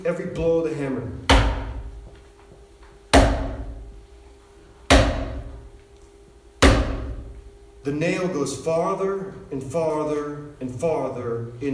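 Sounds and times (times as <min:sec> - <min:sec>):
speech: 0:00.0 - 0:01.5, 0:07.8 - 0:11.7
low hum: 0:00.0 - 0:11.7
preacher's fist pounding a wooden pulpit: 0:01.2 - 0:02.0, 0:03.1 - 0:03.9, 0:04.9 - 0:05.7, 0:06.6 - 0:07.4.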